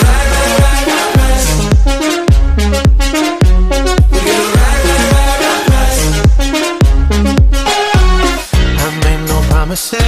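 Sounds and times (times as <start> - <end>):
electro ringtone: 0.0 - 8.9.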